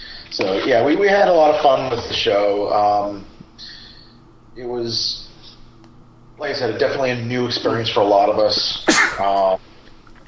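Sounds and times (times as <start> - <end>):
speech: 0.4 - 3.3, 4.6 - 5.2, 6.4 - 9.7
person sneezing: 8.9 - 9.4.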